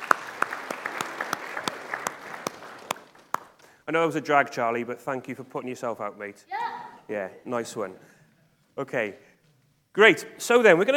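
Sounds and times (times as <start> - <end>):
round of applause: 0.0 - 3.8
speech: 3.9 - 8.1, 8.8 - 9.3, 10.0 - 10.9.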